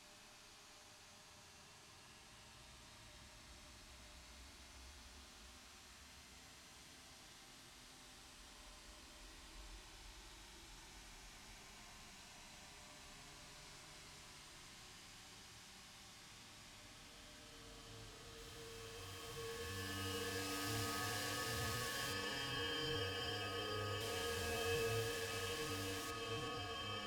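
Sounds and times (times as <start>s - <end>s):
ambient music: 17.7s - 27.0s.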